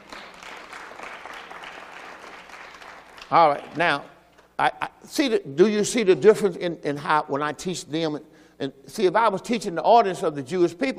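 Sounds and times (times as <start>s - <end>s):
church congregation applauding after a sermon: 0.0s - 4.0s
speech: 3.3s - 10.9s.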